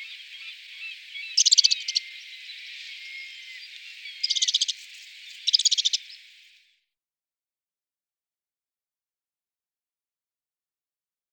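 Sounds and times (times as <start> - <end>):
oeverpieper bird calling: 0.0 - 6.5.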